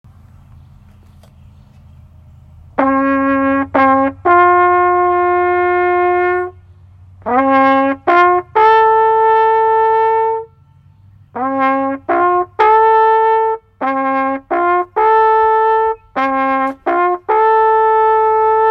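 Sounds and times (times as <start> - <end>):
bugle call on Memorial Day: 2.8 - 6.6, 7.2 - 10.7, 11.3 - 18.6.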